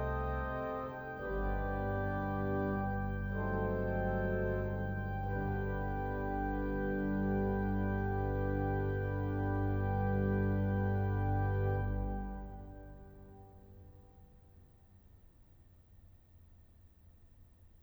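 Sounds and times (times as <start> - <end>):
organ improvisation of a Victorian sonata: 0.0 - 13.4.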